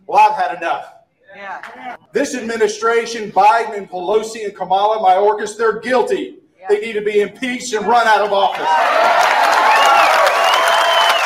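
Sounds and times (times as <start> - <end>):
speech: 0.4 - 9.3
audience cheering: 8.1 - 11.2.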